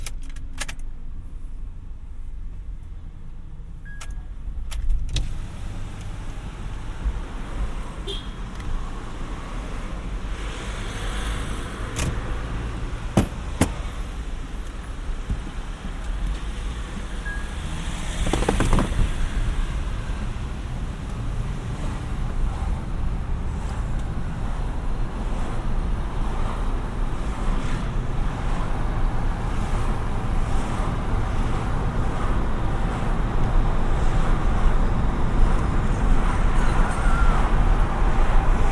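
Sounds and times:
car rumble: 0.0s - 38.7s
sharp clicks and knocks: 18.2s - 19.1s.

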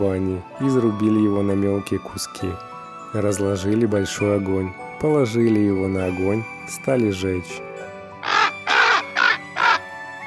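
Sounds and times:
speech: 0.0s - 7.7s
crow cawing: 8.2s - 9.9s.

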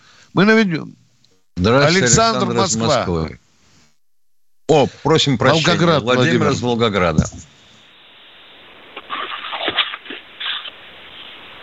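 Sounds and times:
faint hiss: 0.0s - 4.0s, 4.7s - 11.6s
speech: 0.3s - 1.0s, 1.6s - 3.4s, 4.7s - 7.5s
paper rustling: 9.1s - 10.8s.

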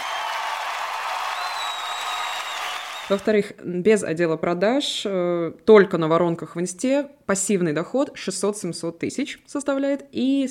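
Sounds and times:
applause: 0.0s - 3.4s
speech: 3.1s - 10.4s.

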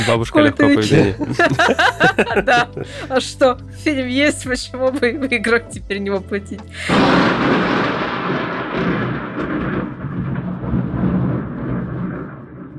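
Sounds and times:
laughter: 0.0s - 3.4s
speech: 0.0s - 8.5s
thunder clap from nearby lightning: 6.9s - 12.7s.

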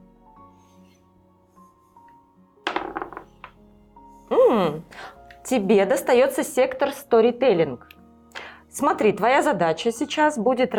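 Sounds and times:
die being thrown onto a table: 2.7s - 3.6s
speech: 4.6s - 7.9s, 8.8s - 10.7s.

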